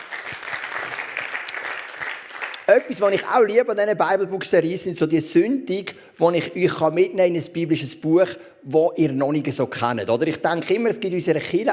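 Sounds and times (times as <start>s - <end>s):
audience applause: 0.0s - 2.7s
speech: 2.7s - 11.7s.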